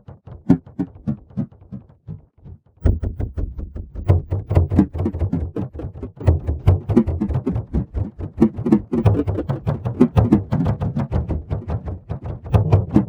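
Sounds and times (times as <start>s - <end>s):
drum pattern: 2.8s - 13.0s.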